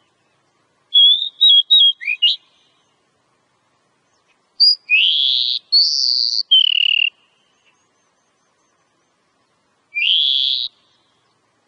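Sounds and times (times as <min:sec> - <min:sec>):
oriental magpie-robin whistling: 0:00.9 - 0:02.7, 0:04.6 - 0:08.8, 0:09.9 - 0:11.1.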